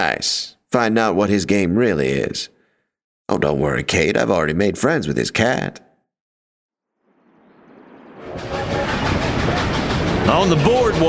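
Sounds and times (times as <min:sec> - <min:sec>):
speech: 0:00.1 - 0:02.5, 0:03.3 - 0:05.9, 0:10.3 - 0:11.0
wood-fired train engine descending mountainside: 0:08.2 - 0:11.0.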